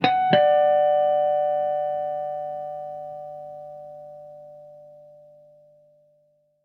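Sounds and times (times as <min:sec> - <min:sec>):
acoustic music: 0:00.0 - 0:04.4.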